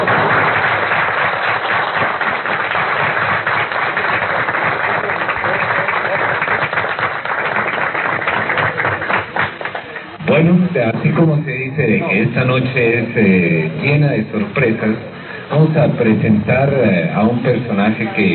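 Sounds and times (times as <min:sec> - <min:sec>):
audience applause: 0:00.0 - 0:10.2
speech: 0:10.8 - 0:18.3.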